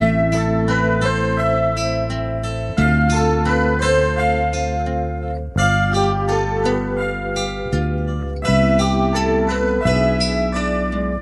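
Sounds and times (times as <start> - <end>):
sad guitar loop: 0.0 - 11.1.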